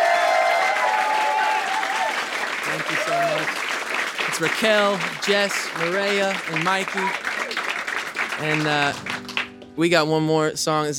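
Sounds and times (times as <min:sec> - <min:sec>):
audience applause for the singers at a live music performance: 0:00.0 - 0:09.6
speech: 0:03.1 - 0:03.6, 0:04.3 - 0:07.3, 0:08.4 - 0:10.9.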